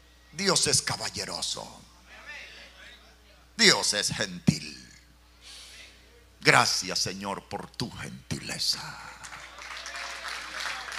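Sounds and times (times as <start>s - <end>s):
speech: 0.4s - 1.9s, 3.6s - 4.9s, 6.4s - 9.2s
crowd clapping: 9.2s - 10.9s.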